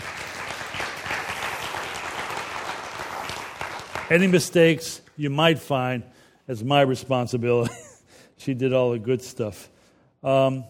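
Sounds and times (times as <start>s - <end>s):
audience applause: 0.0s - 4.4s
speech: 4.1s - 10.6s.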